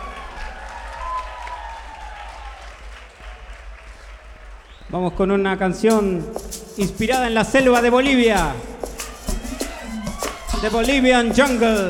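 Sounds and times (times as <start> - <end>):
audience applause at a live festival: 0.0 - 4.8, 9.1 - 11.8
speech: 4.9 - 8.7, 10.6 - 11.8.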